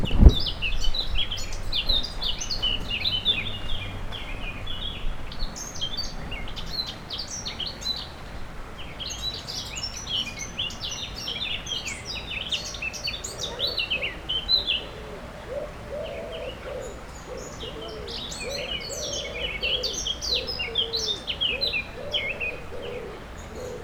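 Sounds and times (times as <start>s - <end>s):
constant low noise: 0.0s - 23.8s
warbler song: 0.0s - 23.8s
low cooing phrase: 13.4s - 23.8s.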